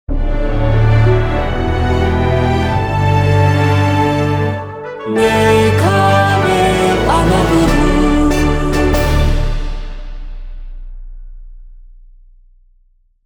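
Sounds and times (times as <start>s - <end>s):
jingle: 0.2s - 10.4s.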